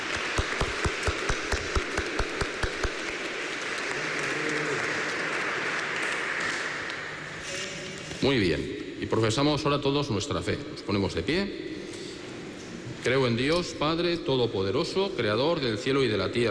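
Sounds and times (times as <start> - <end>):
audience applauding: 0.0 - 7.4
speech: 8.2 - 11.7, 13.0 - 16.4.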